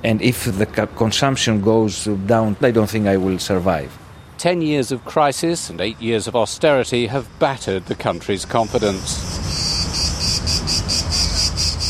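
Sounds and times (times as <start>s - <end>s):
speech: 0.0s - 9.5s
cicadas singing in a high-pitched buzz: 3.4s - 11.8s.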